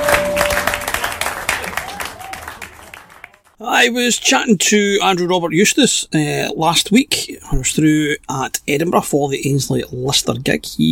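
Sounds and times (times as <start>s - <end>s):
whistle-like tone: 0.0s - 1.2s
audience applause for dancers: 0.0s - 3.6s
speech: 3.6s - 10.9s.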